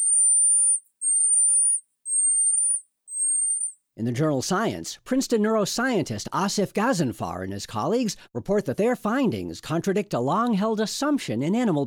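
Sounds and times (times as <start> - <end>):
marmoset high whistled calls: 0.0 - 3.8
speech: 4.0 - 11.8.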